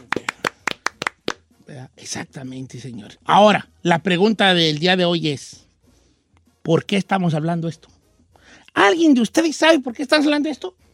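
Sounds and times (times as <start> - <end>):
hands clapping: 0.0 - 1.5
speech: 2.0 - 5.6, 6.6 - 7.9, 8.8 - 10.8.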